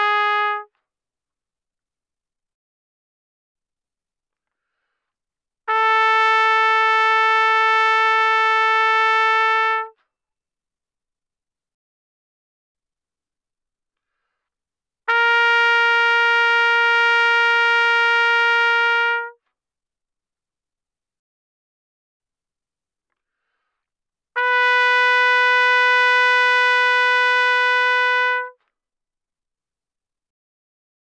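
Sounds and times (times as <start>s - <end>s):
very loud trumpet notes without vibrato: 0.0s - 0.7s, 5.7s - 10.0s, 15.1s - 19.4s, 24.4s - 28.6s.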